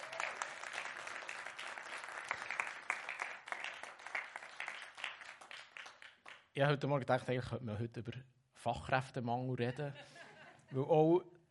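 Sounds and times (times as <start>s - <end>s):
audience applause: 0.0s - 6.4s
speech: 6.6s - 11.4s
laughter: 9.7s - 10.9s.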